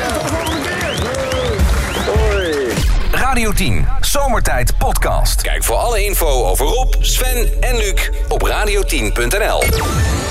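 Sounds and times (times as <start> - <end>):
cheering: 0.0 - 2.8
crowd applause: 0.0 - 3.0
rising whistles: 0.3 - 2.7
speech: 3.3 - 10.2.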